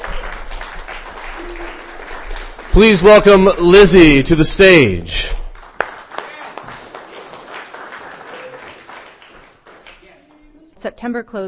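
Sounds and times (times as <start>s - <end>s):
audience applause at a literary reading: 0.0s - 4.2s, 5.5s - 10.2s
speech: 2.8s - 5.4s, 10.9s - 11.4s.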